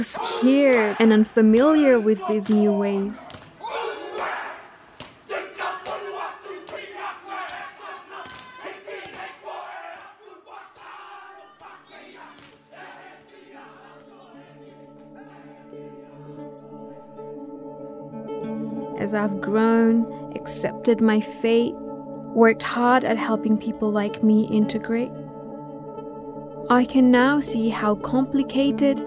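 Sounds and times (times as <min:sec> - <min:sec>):
group shouting a haka war chant in rhythmic bursts: 0:00.0 - 0:01.3, 0:01.9 - 0:16.2
speech: 0:00.0 - 0:03.4, 0:19.1 - 0:25.2, 0:26.7 - 0:29.0
loud sustained droning chant of many voices: 0:00.0 - 0:16.9.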